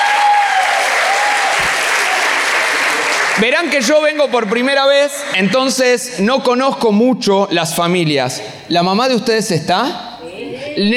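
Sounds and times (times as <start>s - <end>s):
audience applause: 0.0s - 5.8s
speech: 3.4s - 10.1s, 10.8s - 10.9s.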